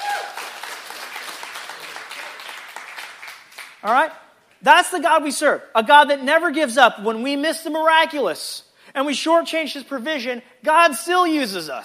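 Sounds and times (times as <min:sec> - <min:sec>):
audience clapping: 0:00.0 - 0:04.2
speech: 0:03.8 - 0:11.8.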